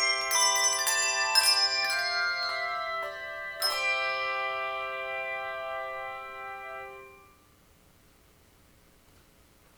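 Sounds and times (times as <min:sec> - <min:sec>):
handbells playing a carol: 0:00.0 - 0:07.4.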